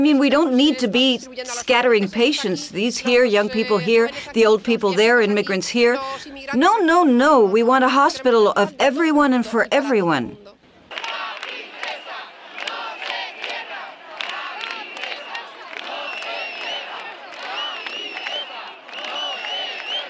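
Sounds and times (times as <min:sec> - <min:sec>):
speech: 0:00.0 - 0:10.6
cheering: 0:10.9 - 0:20.0
large crowd chanting and shouting: 0:10.9 - 0:20.0
sharp whistles: 0:15.1 - 0:20.0.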